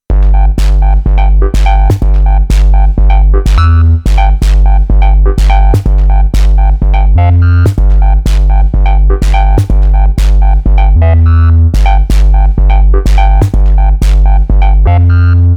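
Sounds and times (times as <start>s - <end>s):
Korg minilogue xd synthesizer: 0.0s - 15.5s.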